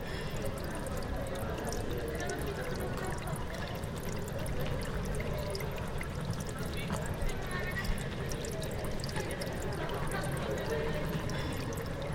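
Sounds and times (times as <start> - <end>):
tourists in water: 0.0 - 12.1.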